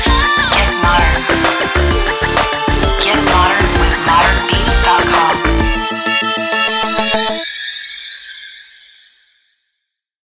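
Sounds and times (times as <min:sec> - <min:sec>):
pop anthem music: 0:00.0 - 0:07.4.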